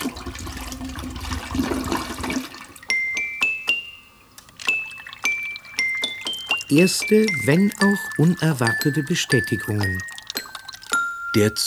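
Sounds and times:
toilet flushing: 0.0 - 11.6
speech: 6.7 - 10.1, 11.3 - 11.6.

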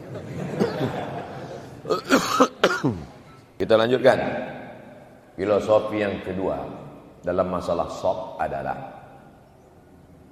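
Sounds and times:
laughter: 0.0 - 2.0
cough: 0.6 - 1.0, 1.8 - 3.3
speech: 2.4 - 3.1, 3.7 - 4.5, 5.4 - 9.0.

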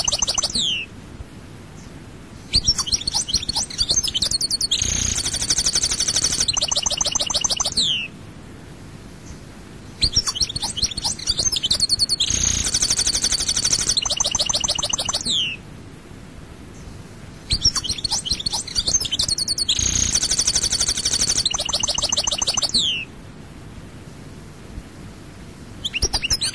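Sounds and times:
European goldfinch song: 0.0 - 0.9, 1.8 - 8.2, 10.0 - 15.6, 16.7 - 23.1, 25.8 - 26.5.

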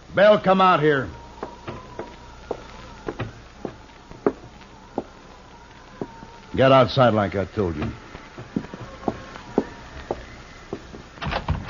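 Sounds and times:
speech: 0.2 - 1.2, 6.6 - 8.0
door being opened: 1.4 - 4.5, 7.7 - 11.6.

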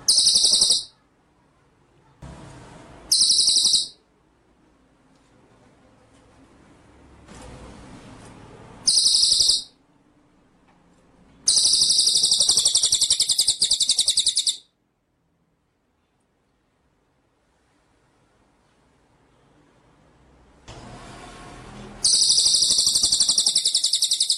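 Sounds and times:
white-rumped shama rattling trill: 0.0 - 0.9, 3.1 - 4.0, 8.9 - 9.7, 11.5 - 14.6, 22.0 - 24.3.

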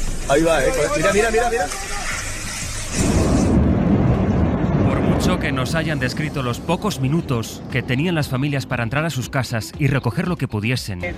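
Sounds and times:
faint hiss: 0.0 - 3.6
speech: 0.3 - 2.0, 5.4 - 11.1
lava flowing from the La Palma volcano as houses collapse and explode: 2.9 - 8.0.

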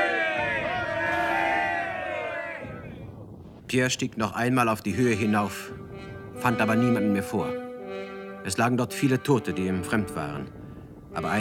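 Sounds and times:
soldiers shouting hurrah battle cry: 0.0 - 2.9
speech: 3.7 - 7.6, 8.4 - 11.3.

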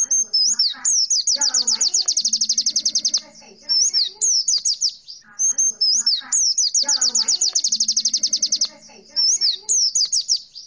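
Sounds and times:
Oriental white-eye song: 0.0 - 10.4.

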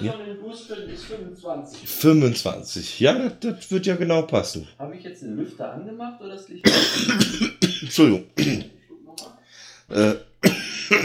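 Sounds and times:
speech: 0.0 - 11.0
person coughing: 6.6 - 8.7, 10.0 - 11.0.

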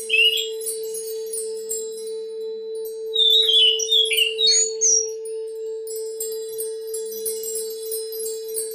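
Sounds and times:
Oriental magpie-robin song: 0.0 - 0.7, 3.1 - 5.3.

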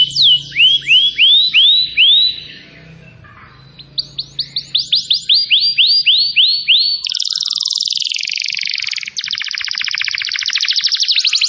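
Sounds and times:
canary song of chirps and buzzy trills: 0.0 - 11.4.

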